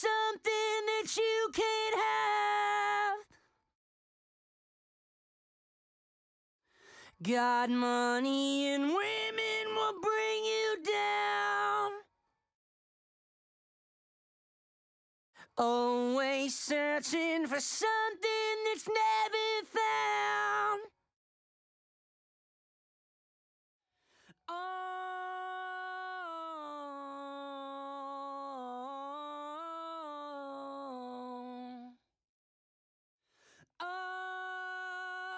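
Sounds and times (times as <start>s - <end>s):
lead vocals: 0.0s - 3.3s, 7.1s - 12.0s, 15.5s - 20.9s, 24.5s - 31.9s, 33.8s - 35.3s.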